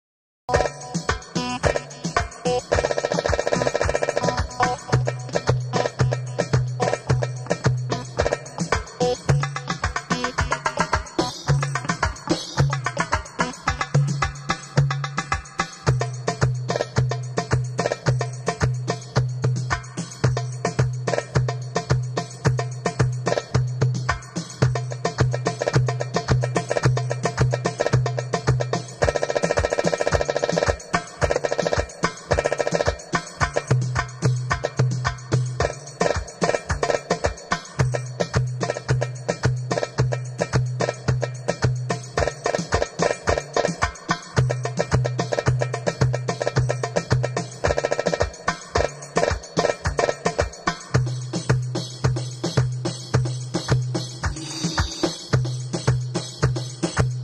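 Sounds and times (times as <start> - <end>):
darbuka solo: 0.5 - 57.2.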